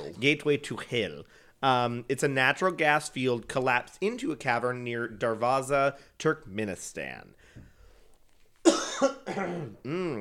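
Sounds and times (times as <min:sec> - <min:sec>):
speech: 0:00.2 - 0:07.7, 0:09.0 - 0:10.1
deep cough: 0:08.6 - 0:10.1.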